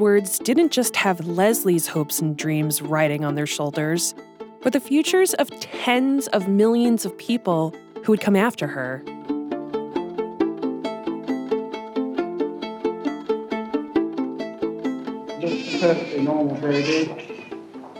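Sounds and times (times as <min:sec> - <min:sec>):
speech: 0:00.0 - 0:09.1, 0:15.8 - 0:17.4
steady rhythmic plucked-sounding tones: 0:00.0 - 0:17.9
newborn baby girl's first cries: 0:09.0 - 0:17.7.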